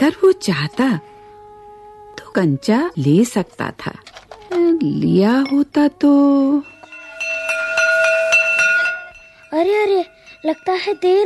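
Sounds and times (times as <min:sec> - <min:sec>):
speech: 0:00.0 - 0:01.1, 0:02.3 - 0:06.7, 0:09.5 - 0:11.2
school bell ringing: 0:06.5 - 0:11.2.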